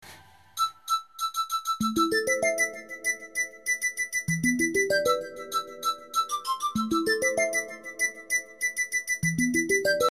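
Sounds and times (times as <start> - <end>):
flute ringtone: 0.6 - 10.0.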